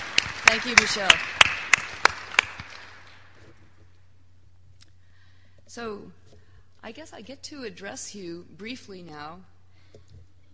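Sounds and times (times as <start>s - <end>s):
audience applause: 0.0s - 3.3s
speech: 0.5s - 1.6s, 5.8s - 6.2s, 6.8s - 9.5s.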